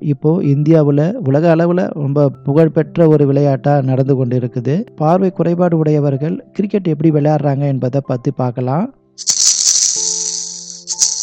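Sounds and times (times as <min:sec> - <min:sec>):
speech: 0:00.0 - 0:09.8
sound ball for visually impaired players rattling: 0:09.2 - 0:11.2.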